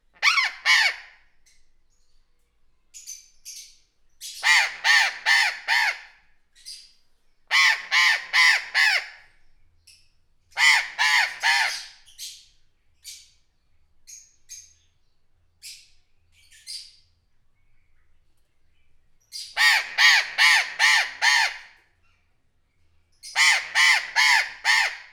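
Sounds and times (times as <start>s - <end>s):
burrowing parrot calling with greater vehemence at a zoo: 0.2s - 1.2s, 4.4s - 6.2s, 7.5s - 9.2s, 10.6s - 12.0s, 19.4s - 21.8s, 23.2s - 25.1s.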